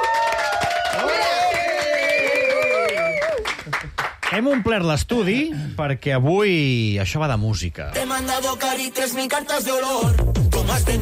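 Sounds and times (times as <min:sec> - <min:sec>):
studio audience cheering and making noise: 0:00.0 - 0:03.7
speech: 0:04.4 - 0:11.0.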